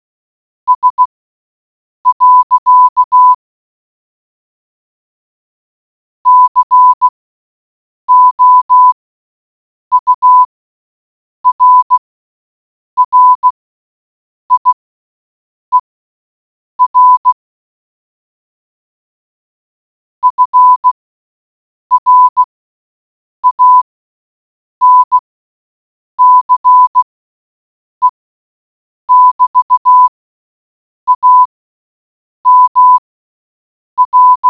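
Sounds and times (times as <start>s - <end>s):
morse code beeps: 0.7s - 1.1s, 2.1s - 3.4s, 6.3s - 7.1s, 8.1s - 9.0s, 9.9s - 10.5s, 11.4s - 12.0s, 13.0s - 13.6s, 14.5s - 14.8s, 16.8s - 17.4s, 20.2s - 21.0s, 21.9s - 22.5s, 23.4s - 23.8s, 24.8s - 25.2s, 26.2s - 27.1s, 29.1s - 30.2s, 31.1s - 31.5s, 32.5s - 33.0s, 34.0s - 34.4s.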